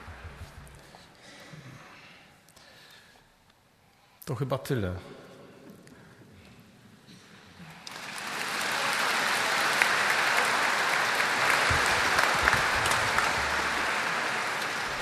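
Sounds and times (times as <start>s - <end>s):
speech: 4.3s - 5.2s
audience applause: 7.7s - 15.0s.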